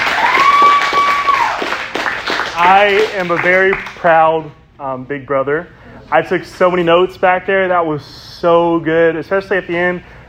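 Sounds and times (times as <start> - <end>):
audience clapping: 0.0 - 4.1
speech: 2.6 - 10.2.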